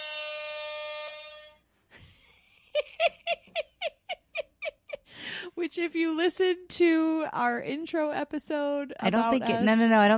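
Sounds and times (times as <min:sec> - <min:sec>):
hype button air-horn-like blare: 0:00.0 - 0:01.7
laughter: 0:02.0 - 0:05.1
speech: 0:05.6 - 0:10.1.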